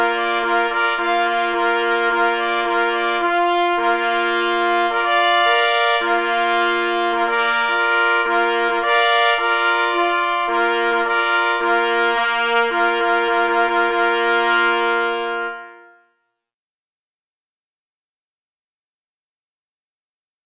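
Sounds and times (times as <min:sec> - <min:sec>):
hunting signal for the Polish hunting spaniel: 0:00.0 - 0:16.1.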